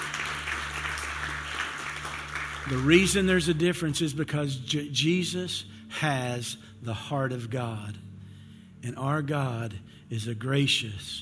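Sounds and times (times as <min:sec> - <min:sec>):
church congregation clapping in praise: 0:00.0 - 0:04.1
speech: 0:02.7 - 0:08.1, 0:08.8 - 0:11.2.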